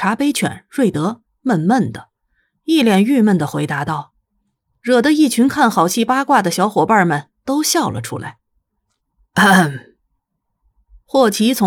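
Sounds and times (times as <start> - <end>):
speech: 0.0 - 2.1, 2.7 - 4.1, 4.8 - 8.4, 9.4 - 9.9, 11.1 - 11.6
person coughing: 9.4 - 9.9.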